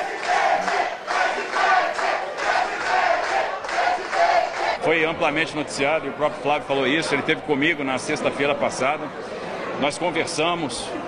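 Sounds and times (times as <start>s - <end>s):
crowd shouting: 0.0s - 4.9s
speech: 4.9s - 11.0s.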